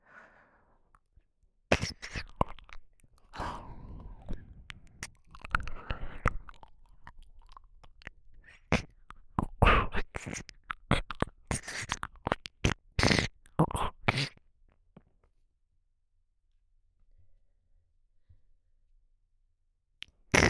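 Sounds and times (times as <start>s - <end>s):
ASMR ear licking: 1.7s - 14.4s, 20.0s - 20.4s.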